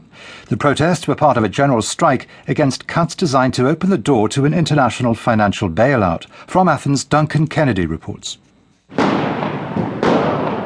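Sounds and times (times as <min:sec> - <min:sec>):
speech: 0:00.5 - 0:09.2
stun grenades exploding across the streets of central Athens: 0:08.9 - 0:10.6.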